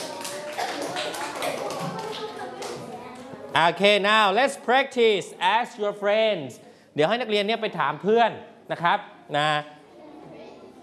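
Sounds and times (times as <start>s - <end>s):
group of children clapping: 0.0s - 3.3s
speech: 3.6s - 9.8s.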